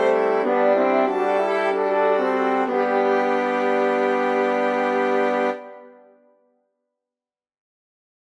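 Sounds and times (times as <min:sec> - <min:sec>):
Mixolydian fugue in 12edo: 0:00.0 - 0:06.3.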